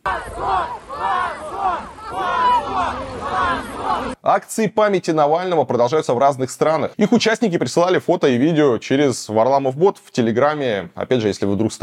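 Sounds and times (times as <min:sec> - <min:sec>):
protest crowd shouting shame at detentions: 0:00.0 - 0:04.2
speech: 0:04.3 - 0:11.8.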